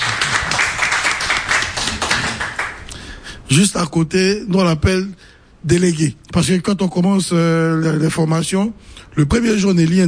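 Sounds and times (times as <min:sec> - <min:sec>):
audience applause: 0:00.0 - 0:02.8
speech: 0:03.5 - 0:10.0.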